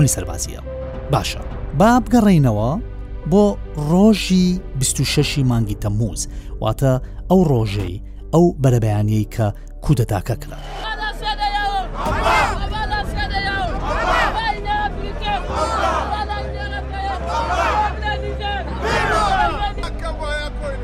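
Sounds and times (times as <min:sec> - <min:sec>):
speech: 0:00.0 - 0:11.0
crowd shouting near Niger's presidential palace during a coup: 0:10.6 - 0:20.0
steady low rumble: 0:12.0 - 0:15.8.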